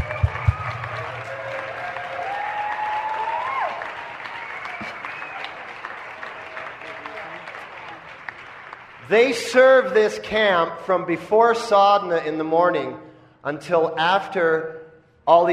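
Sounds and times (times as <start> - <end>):
audience applause at a Summer Solstice camp gathering: 0.0 - 9.8
speech: 9.1 - 15.5.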